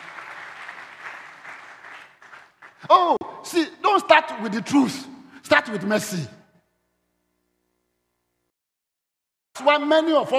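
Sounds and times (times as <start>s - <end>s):
congregation clapping hands at a church service: 0.0s - 3.2s
speech: 2.8s - 6.4s, 9.8s - 10.3s.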